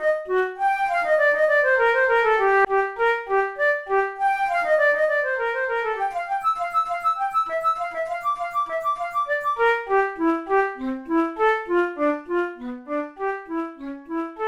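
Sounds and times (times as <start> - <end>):
flute duet of a baroque invention in F major: 0.0 - 14.4.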